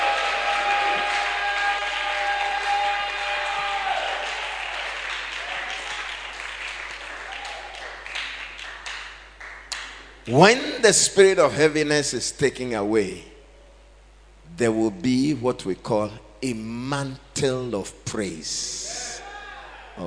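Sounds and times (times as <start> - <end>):
audience shouting: 0.0 - 4.8
audience clapping: 0.0 - 10.2
speech: 10.3 - 13.3, 14.6 - 19.0.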